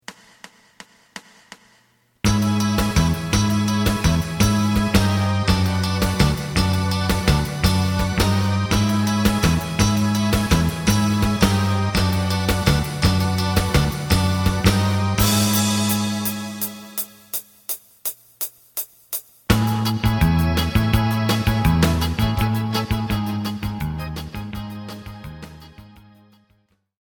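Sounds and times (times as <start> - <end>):
lead melody: 2.3 - 17.4, 19.5 - 26.5.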